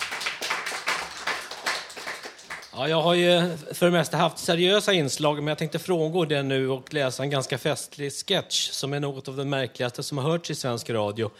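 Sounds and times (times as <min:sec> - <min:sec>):
applause: 0:00.0 - 0:02.9
speech: 0:02.8 - 0:11.3.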